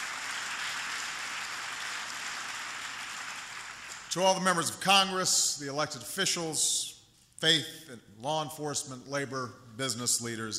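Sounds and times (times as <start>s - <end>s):
audience applause: 0.0s - 4.1s
speech: 4.1s - 10.5s.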